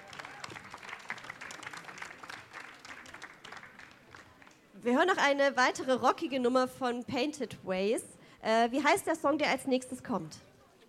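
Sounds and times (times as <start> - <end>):
audience applause: 0.0 - 4.6
speech: 4.8 - 10.5.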